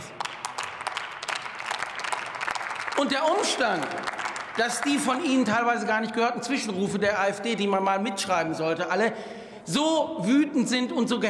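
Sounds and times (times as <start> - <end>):
applause in parliament: 0.0 - 5.8
speech: 3.0 - 11.2.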